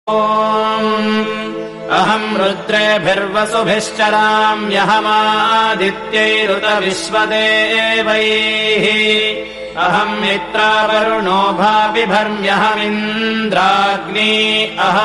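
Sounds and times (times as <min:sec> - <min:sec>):
Sanskrit mantra chanting: 0:00.1 - 0:15.0.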